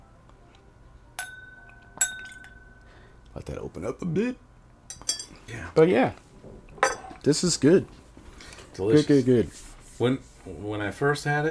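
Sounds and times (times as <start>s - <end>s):
drops of water added to a whisky glass clinking: 1.2s - 2.9s, 4.9s - 5.4s, 6.8s - 7.2s
speech: 3.4s - 6.6s, 7.2s - 8.0s, 8.8s - 11.4s.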